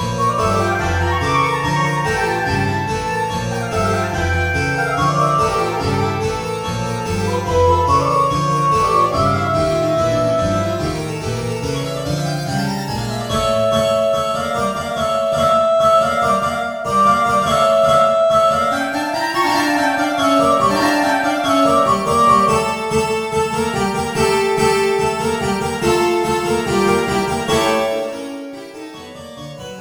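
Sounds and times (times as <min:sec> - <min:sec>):
MIDI music: 0:00.0 - 0:29.1.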